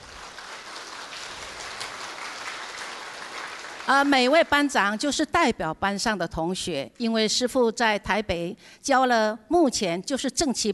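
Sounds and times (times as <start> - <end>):
crowd clapping: 0.0 - 4.6
speech: 3.9 - 10.7.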